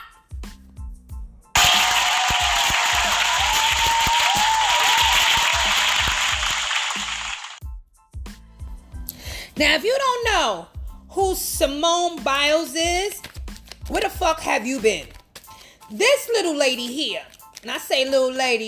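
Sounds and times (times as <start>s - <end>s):
crowd round of applause: 1.6s - 7.6s
speech: 9.6s - 13.2s, 13.9s - 15.2s, 15.9s - 18.6s.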